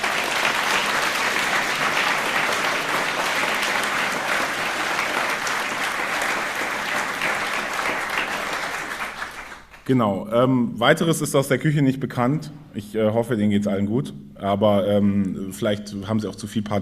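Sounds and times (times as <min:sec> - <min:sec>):
large audience applause: 0:00.0 - 0:09.8
speech: 0:09.9 - 0:16.8.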